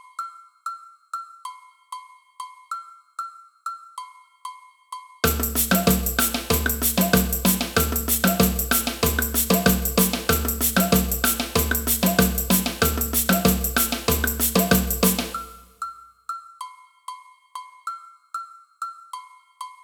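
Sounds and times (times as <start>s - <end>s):
agogo bells in a samba band: 5.2s - 15.6s.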